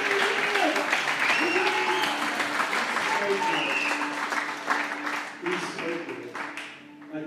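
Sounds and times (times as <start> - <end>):
faint voices and cheers: 0.0 - 4.2
crowd applause: 0.0 - 7.1.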